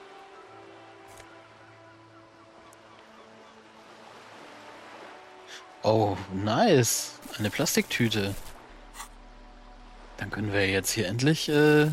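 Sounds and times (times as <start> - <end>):
distant seabird cries: 1.3 - 4.2
speech: 5.8 - 8.5, 10.2 - 11.9.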